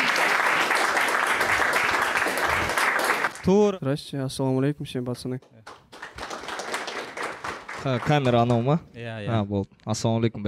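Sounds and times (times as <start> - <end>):
live audience applause at a show: 0.0 - 3.5, 5.7 - 8.8
speech: 3.4 - 5.8, 7.8 - 10.4.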